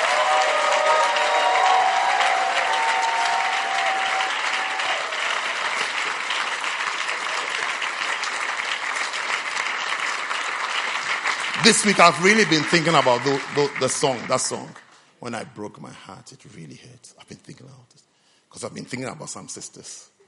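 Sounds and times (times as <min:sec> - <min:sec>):
audience clapping: 0:00.0 - 0:15.0
speech: 0:11.7 - 0:20.1.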